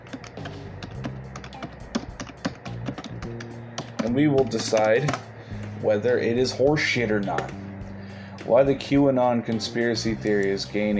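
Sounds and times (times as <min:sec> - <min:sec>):
typing on a computer keyboard: 0:00.2 - 0:05.3
speech: 0:04.0 - 0:07.6, 0:08.5 - 0:10.9.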